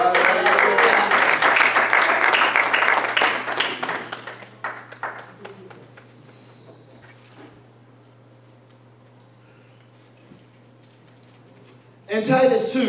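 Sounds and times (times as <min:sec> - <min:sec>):
audience clapping hands: 0:00.0 - 0:06.6
speech: 0:12.2 - 0:12.8.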